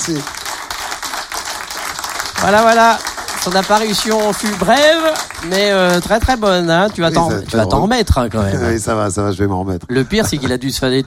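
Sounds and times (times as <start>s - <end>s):
speech: 0.0s - 0.4s, 2.4s - 11.0s
audience applause: 0.0s - 7.5s.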